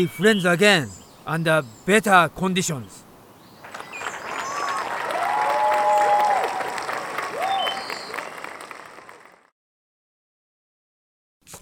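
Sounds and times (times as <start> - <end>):
speech: 0.0 - 3.0
group of Americans applauding a speech: 3.6 - 9.5.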